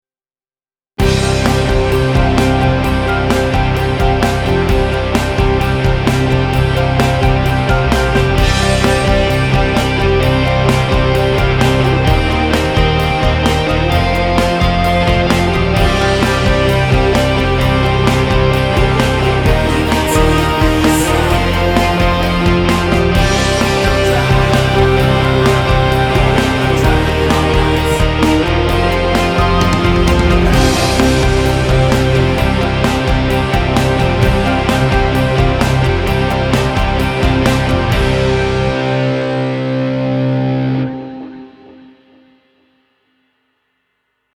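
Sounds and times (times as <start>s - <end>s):
instrumental music: 1.0s - 43.0s.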